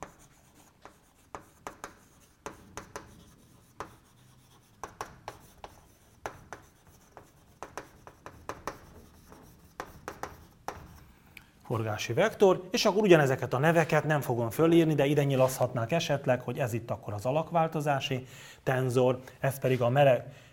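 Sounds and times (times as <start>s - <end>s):
pen strokes of handwriting during a mechanics lecture: 0.0s - 11.1s
speech: 11.7s - 20.5s.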